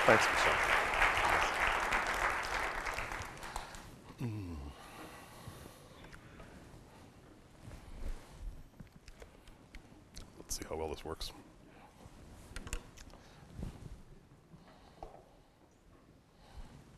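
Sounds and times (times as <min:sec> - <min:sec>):
audience clapping to welcome a physicist: 0:00.0 - 0:04.0
speech: 0:00.1 - 0:00.8, 0:11.0 - 0:11.6.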